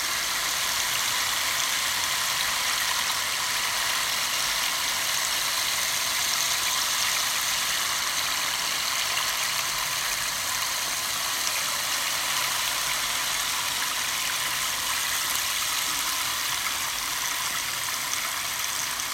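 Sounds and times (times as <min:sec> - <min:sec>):
rainstick for guided meditation: 0:00.0 - 0:19.1.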